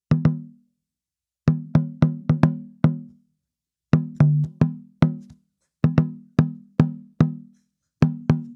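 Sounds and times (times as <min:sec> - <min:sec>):
African tambora drum: 0:01.5 - 0:03.1, 0:04.0 - 0:08.5.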